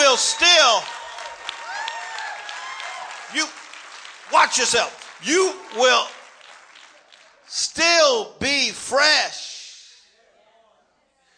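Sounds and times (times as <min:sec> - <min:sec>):
audience clapping: 0:00.0 - 0:08.0
speech: 0:04.5 - 0:06.2, 0:07.5 - 0:09.5.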